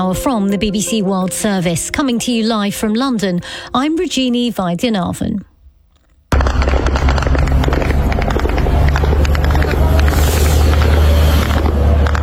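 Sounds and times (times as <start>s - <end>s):
speech: 0.0s - 5.5s
attack drones hitting targets with explosive bursts: 6.3s - 12.2s
constant low rumble: 6.3s - 12.2s
attack drones droning engine noise overhead: 6.4s - 12.2s.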